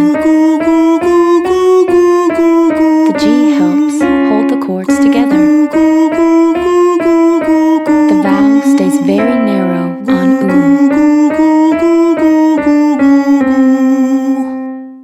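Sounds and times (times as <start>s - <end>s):
man saying goo: 0.0s - 14.6s
woman saying goo: 3.0s - 5.7s, 7.9s - 11.0s.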